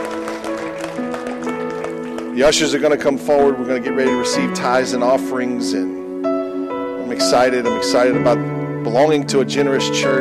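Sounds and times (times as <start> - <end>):
audience clapping hands: 0.0 - 3.0
speech: 2.4 - 6.0, 7.2 - 10.1.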